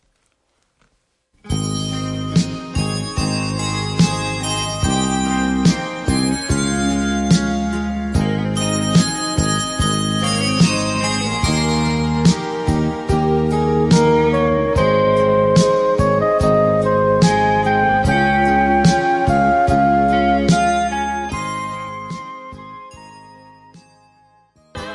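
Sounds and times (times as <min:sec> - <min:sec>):
recorded Korean ballad playing: 0:01.4 - 0:24.9.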